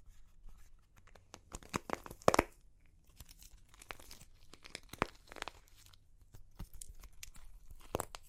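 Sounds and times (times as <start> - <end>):
dry clay cracking and crunching: 1.0 - 8.2.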